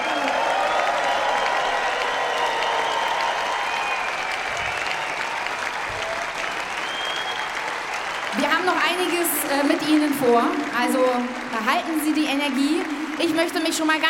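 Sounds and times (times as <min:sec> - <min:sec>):
large audience applause: 0:00.0 - 0:14.0
speech: 0:08.7 - 0:14.0.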